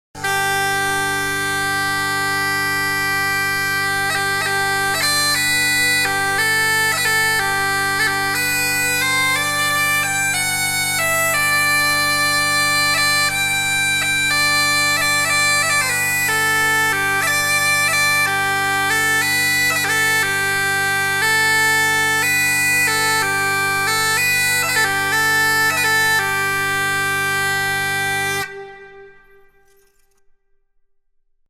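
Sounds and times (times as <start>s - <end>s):
bagpipe: 0.2s - 29.8s.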